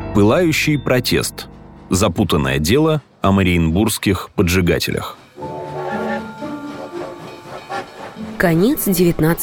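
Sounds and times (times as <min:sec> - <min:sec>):
speech: 0:00.2 - 0:05.5, 0:08.4 - 0:09.4
train from Riga pulling away, rolling rumble: 0:00.3 - 0:09.4
train wheels tonal squeals: 0:05.3 - 0:09.4.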